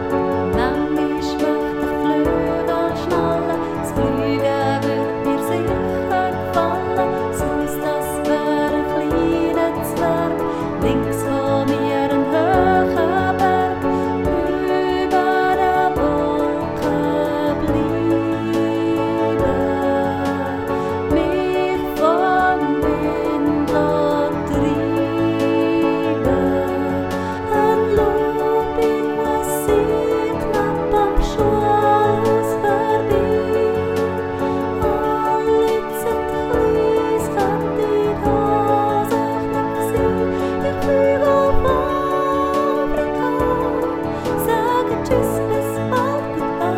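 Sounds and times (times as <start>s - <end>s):
single-voice melody: 0.1s - 46.7s.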